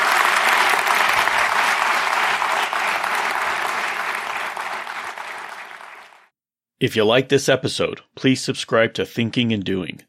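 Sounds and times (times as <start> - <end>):
audience round of applause: 0.0 - 6.3
speech: 6.8 - 10.0.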